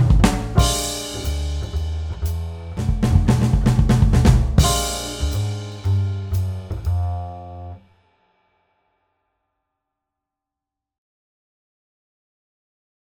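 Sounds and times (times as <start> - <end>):
swing drum fills: 0.0 - 7.8.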